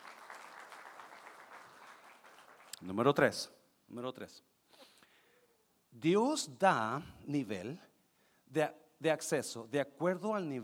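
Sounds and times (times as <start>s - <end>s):
audience applause: 0.0s - 2.8s
speech: 2.8s - 4.5s, 6.0s - 7.9s, 8.5s - 10.6s.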